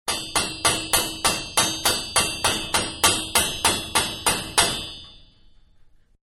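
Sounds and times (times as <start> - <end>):
medium hammer on metal pipe: 0.1 - 6.0.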